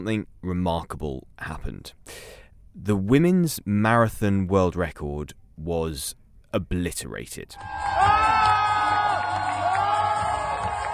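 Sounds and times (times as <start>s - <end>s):
speech: 0.0s - 8.2s
crowd cheering a marathon runner: 7.6s - 10.9s
whoops, high shouts and yells: 7.6s - 10.9s.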